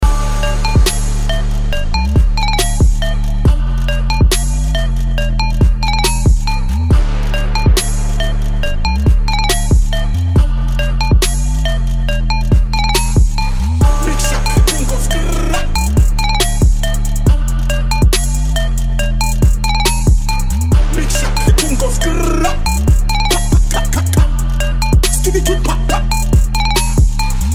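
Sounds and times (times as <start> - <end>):
trap remix: 0.0 - 27.5.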